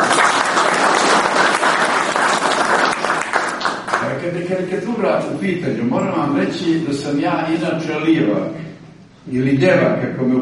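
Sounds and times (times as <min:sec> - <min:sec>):
audience applause at a celebration: 0:00.0 - 0:04.3
speech: 0:04.5 - 0:10.4.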